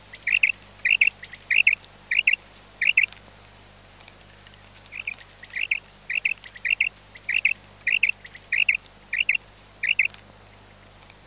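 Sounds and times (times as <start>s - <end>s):
Common quail calling: 0.1s - 3.1s, 4.9s - 10.2s.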